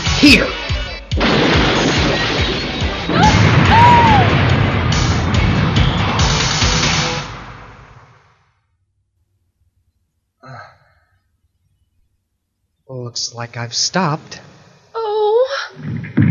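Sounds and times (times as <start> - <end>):
speech: 0.2 - 0.6, 13.1 - 14.5, 15.8 - 16.2
vehicle crashing into a convenience store: 1.2 - 8.2.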